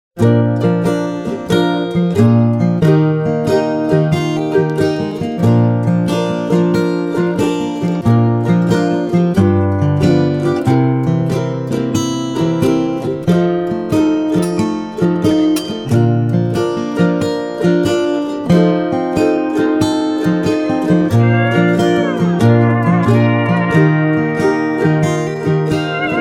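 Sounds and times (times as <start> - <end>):
Hawaiian ukuleles: 0.2 - 26.2.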